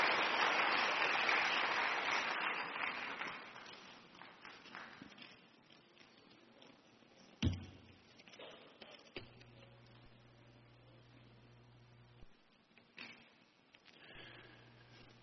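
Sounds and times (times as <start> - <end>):
church congregation applauding: 0.0 - 5.2.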